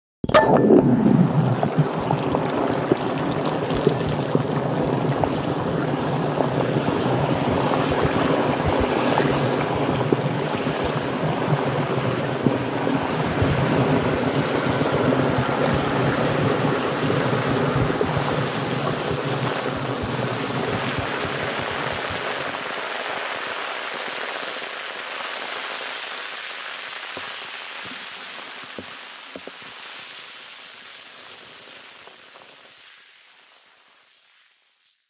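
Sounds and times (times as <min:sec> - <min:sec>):
fizzy tablet bubbling underwater: 0:00.3 - 0:25.6.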